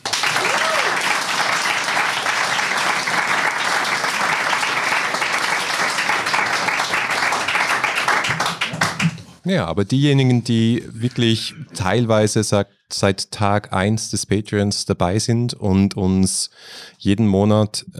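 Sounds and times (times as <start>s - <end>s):
audience applause: 0.0s - 9.4s
speech: 9.5s - 17.9s.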